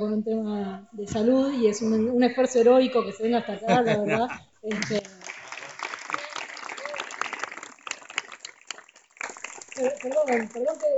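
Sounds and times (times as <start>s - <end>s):
speech: 0.0s - 5.2s, 9.8s - 10.9s
laughter: 3.3s - 7.1s
audience applause: 4.7s - 10.9s.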